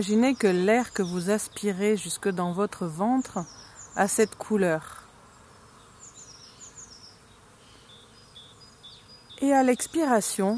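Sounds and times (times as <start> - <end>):
speech: 0.0 - 5.0, 9.4 - 10.5
bees buzzing in a garden: 0.0 - 10.5
faint bird chirps in an outdoor garden: 0.0 - 10.5.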